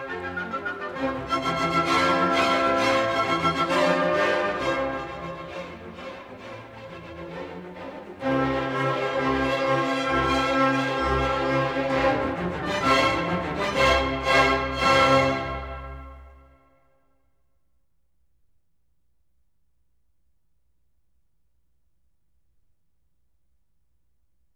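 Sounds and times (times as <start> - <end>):
orchestra playing a fast symphony movement in C major: 0.0 - 16.3.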